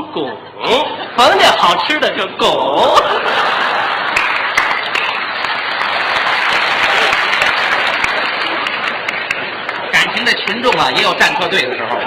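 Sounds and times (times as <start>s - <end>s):
laughter: 0.0s - 1.8s, 2.6s - 9.6s, 10.7s - 12.0s
speech: 0.2s - 3.6s, 10.2s - 12.0s
large audience applauding: 3.5s - 11.4s.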